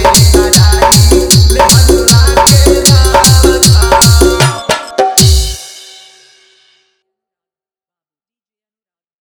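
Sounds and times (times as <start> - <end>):
bass mix music: 0.0 - 5.6.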